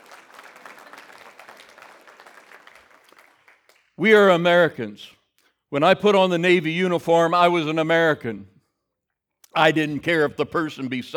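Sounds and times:
audience clapping: 0.0 - 4.6
speech: 4.0 - 8.5, 9.6 - 11.1.

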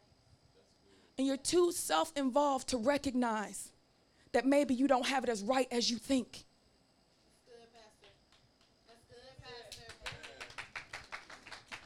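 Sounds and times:
speech: 1.2 - 6.5
sparse audience clapping: 9.6 - 11.8.

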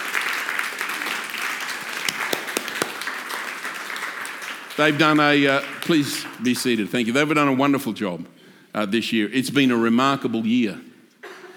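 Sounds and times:
crowd applauding: 0.0 - 6.6
speech: 4.8 - 10.9.

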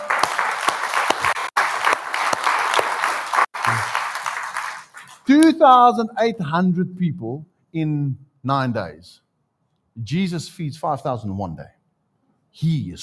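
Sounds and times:
audience applause: 0.0 - 5.3
speech: 5.3 - 9.2, 10.0 - 11.8, 12.5 - 13.0.

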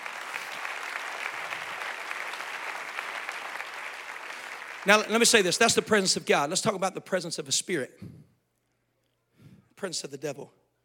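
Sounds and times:
people clapping: 0.0 - 6.1
speech: 4.8 - 8.2, 9.8 - 10.6.

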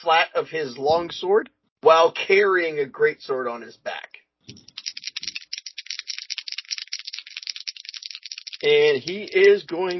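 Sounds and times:
speech: 0.0 - 4.7, 8.6 - 9.9
dice rolling in a dice box: 4.6 - 9.7.

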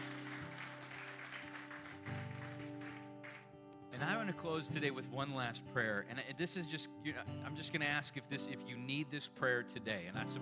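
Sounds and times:
audience applause: 0.0 - 3.5
speech: 4.0 - 10.4.

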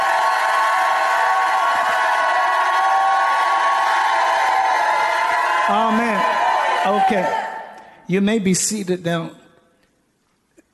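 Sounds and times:
audience shouting in praise: 0.0 - 7.8
speech: 6.8 - 7.4, 8.1 - 9.4.

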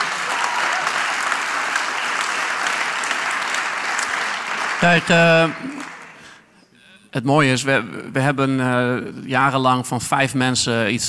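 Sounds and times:
audience applause: 0.0 - 6.4
speech: 4.8 - 6.0, 7.1 - 11.0.

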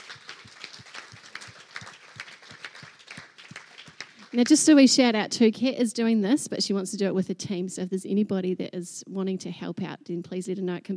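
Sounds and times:
audience applause: 0.0 - 4.7
speech: 4.3 - 10.9.

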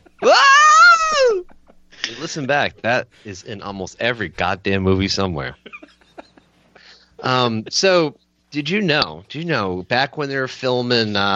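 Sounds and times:
laughter: 0.0 - 3.0, 5.6 - 7.0
Wilhelm scream sound effect: 0.2 - 1.4
speech: 2.3 - 5.8, 7.2 - 11.3.

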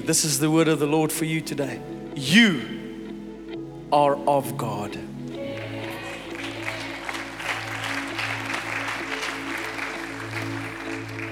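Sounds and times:
speech: 0.0 - 2.8, 3.9 - 5.1
people clapping: 5.3 - 11.2.

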